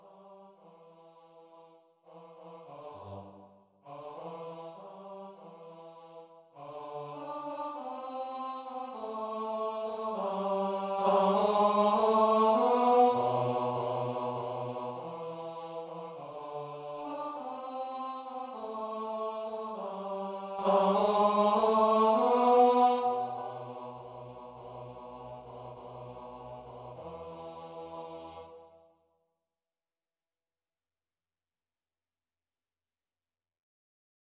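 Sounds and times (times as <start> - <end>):
choir singing: 0.0 - 28.9
bass: 23.4 - 28.5.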